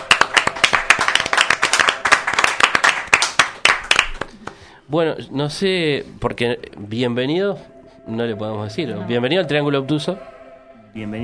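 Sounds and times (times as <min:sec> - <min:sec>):
enthusiastic audience applause: 0:00.0 - 0:04.6
speech: 0:04.9 - 0:10.3, 0:10.9 - 0:11.2.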